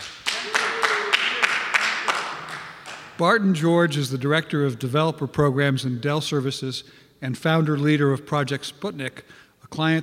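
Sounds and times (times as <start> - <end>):
small group applauding: 0.0 - 3.2
speech: 3.2 - 10.0.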